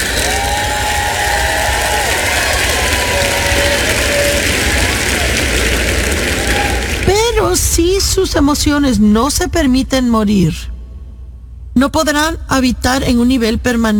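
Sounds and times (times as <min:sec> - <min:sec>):
faint cheers and whoops: 0:00.0 - 0:07.0
audience applauding loudly: 0:00.0 - 0:07.2
speech: 0:07.8 - 0:10.8, 0:11.8 - 0:13.9.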